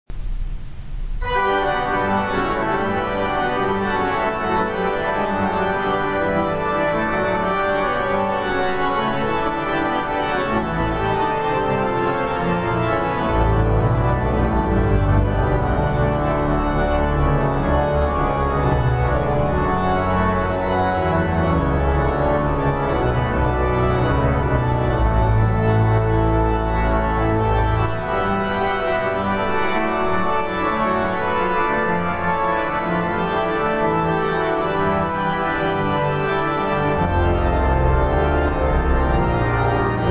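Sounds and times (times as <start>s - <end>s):
organ music: 1.1s - 40.0s.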